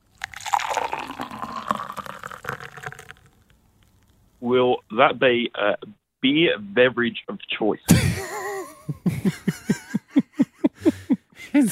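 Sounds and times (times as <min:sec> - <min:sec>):
coffee being poured: 0:00.0 - 0:04.0
speech: 0:04.4 - 0:08.3, 0:09.0 - 0:09.8, 0:11.6 - 0:11.7
laughter: 0:07.9 - 0:11.7.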